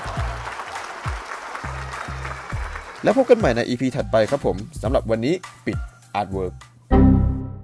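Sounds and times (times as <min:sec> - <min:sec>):
crowd applauding: 0:00.0 - 0:03.8
speech: 0:03.0 - 0:06.6.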